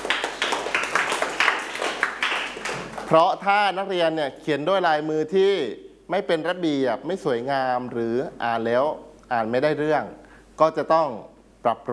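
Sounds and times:
classroom group applauding a student: 0.0 - 3.3
speech: 3.1 - 11.9.

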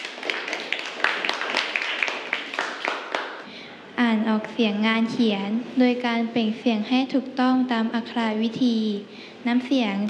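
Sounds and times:
classroom group of people clapping: 0.0 - 3.5
speech: 4.1 - 10.0.

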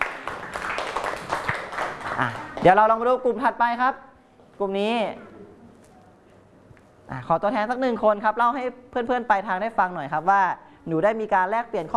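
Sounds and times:
classroom clapping: 0.0 - 2.9
speech: 2.2 - 5.4, 7.1 - 11.9.

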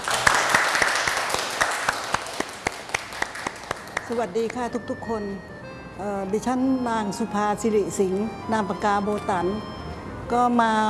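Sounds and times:
room full of people applauding a guest: 0.0 - 4.1
speech: 4.1 - 9.7, 10.3 - 10.8.

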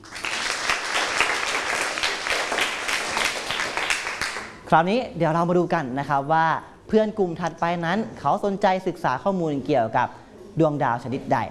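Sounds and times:
classroom applause: 0.0 - 4.6
speech: 4.7 - 11.4.

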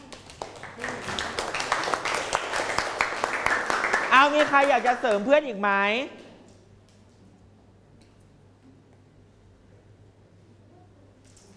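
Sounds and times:
classroom applause for a classmate: 0.0 - 5.4
speech: 4.2 - 6.2.

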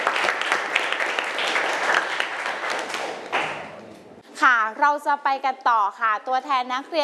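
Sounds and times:
classroom of students applauding: 0.0 - 3.8
speech: 4.4 - 7.0.

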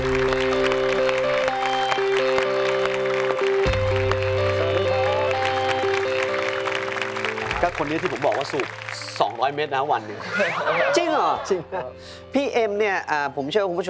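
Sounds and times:
audience applause: 0.0 - 10.2
sustained musical tones with a deeper bass note: 0.0 - 12.3
speech: 7.8 - 13.8.

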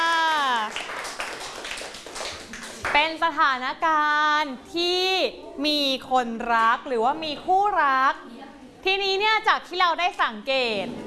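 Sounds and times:
audience clapping: 0.0 - 3.0
speech: 3.0 - 11.0.

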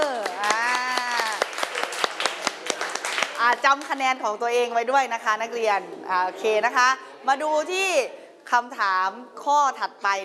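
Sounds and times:
students in a classroom clapping hands: 0.0 - 4.1
speech: 3.5 - 10.2.

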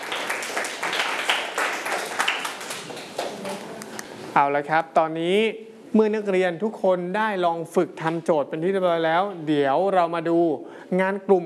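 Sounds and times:
students clapping: 0.0 - 3.7
speech: 4.4 - 11.4.

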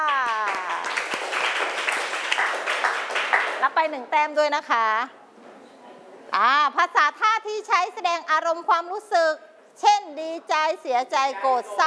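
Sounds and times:
class group clapping: 0.0 - 3.8
speech: 3.6 - 5.2, 6.4 - 11.8.

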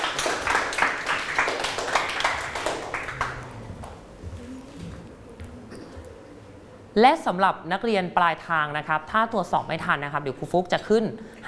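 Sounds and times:
classroom clapping for group three: 0.0 - 5.6
speech: 7.0 - 11.4.

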